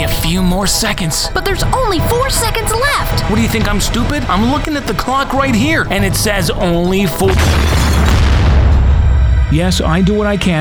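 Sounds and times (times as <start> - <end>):
speech: 0.3 - 8.2, 9.5 - 10.5
bomb explosion: 2.1 - 10.5.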